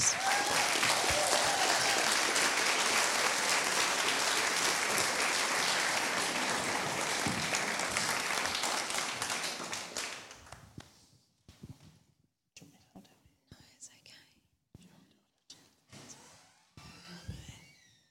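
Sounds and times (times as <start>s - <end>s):
audience applause: 0.0s - 10.6s.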